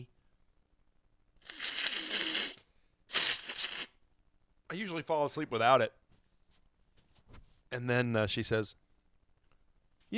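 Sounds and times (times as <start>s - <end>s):
forceful nose blowing: 1.4s - 4.0s
speech: 4.7s - 6.0s, 7.7s - 8.8s.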